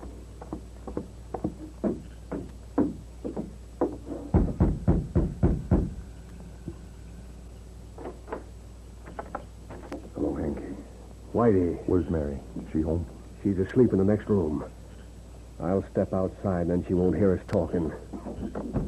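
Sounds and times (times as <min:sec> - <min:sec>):
knocking on a door: 0:00.5 - 0:06.0
speech: 0:11.4 - 0:14.8, 0:15.6 - 0:18.8.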